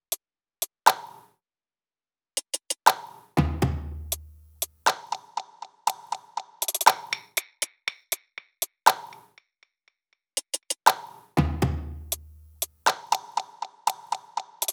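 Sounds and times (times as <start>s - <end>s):
pop drum top loop: 2.4s - 9.3s, 10.4s - 14.7s.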